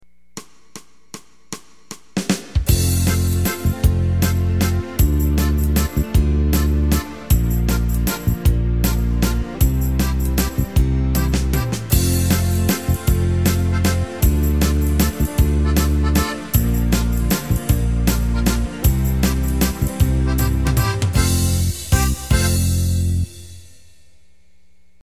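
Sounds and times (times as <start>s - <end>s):
waltz music: 2.7s - 23.4s.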